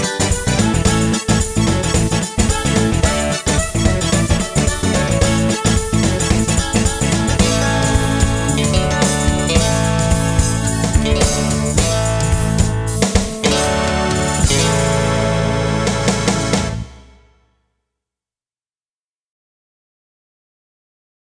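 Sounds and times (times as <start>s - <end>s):
karaoke singing: 0.0s - 16.7s.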